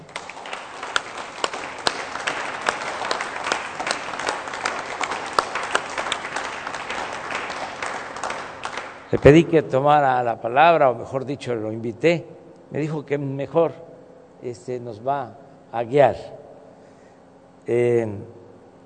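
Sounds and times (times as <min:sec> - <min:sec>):
audience applause: 0:00.0 - 0:09.4
speech: 0:09.1 - 0:16.4, 0:17.6 - 0:18.4.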